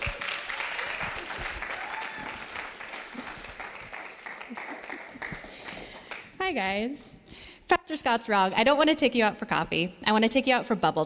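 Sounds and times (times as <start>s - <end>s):
church congregation applause welcoming a guest speaker: 0.0s - 6.3s
speech: 6.5s - 7.1s, 7.9s - 11.0s.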